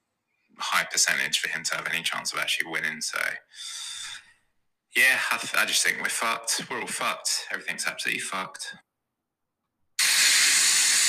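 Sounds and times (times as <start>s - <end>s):
speech: 1.0s - 4.0s, 5.0s - 8.9s
shower running: 10.0s - 11.0s.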